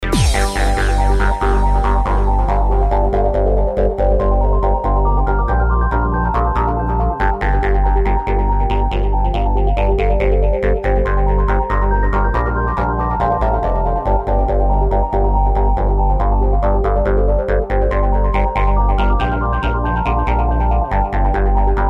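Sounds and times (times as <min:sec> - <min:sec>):
ambient music: 0:00.0 - 0:21.8.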